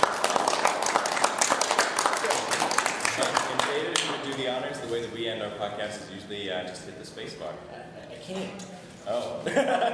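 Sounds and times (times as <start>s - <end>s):
panel audience applause: 0.0s - 4.3s
speech: 5.5s - 9.9s
laughter: 9.4s - 9.9s.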